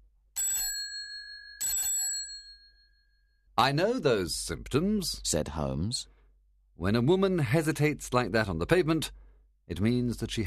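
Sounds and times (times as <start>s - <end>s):
doorbell ringing: 0.4s - 3.4s
speech: 3.6s - 6.1s, 6.8s - 10.4s.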